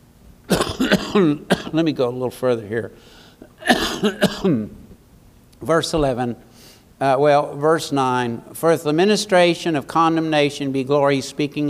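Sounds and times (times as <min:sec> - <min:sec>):
person coughing: 0:00.5 - 0:01.8, 0:03.6 - 0:04.8
speech: 0:00.8 - 0:04.8, 0:05.6 - 0:11.6.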